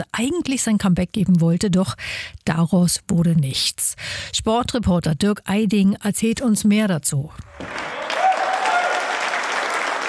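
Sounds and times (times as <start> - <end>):
speech: 0.0 - 8.0
crowd applause in a sports hall: 7.6 - 10.0.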